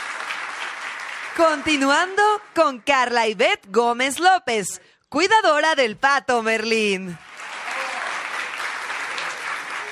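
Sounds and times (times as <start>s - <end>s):
audience applause: 0.0s - 2.2s, 7.2s - 9.9s
speech: 1.4s - 7.3s.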